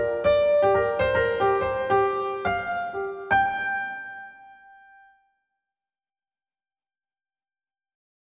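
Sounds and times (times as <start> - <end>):
improvised random melody: 0.0 - 5.1.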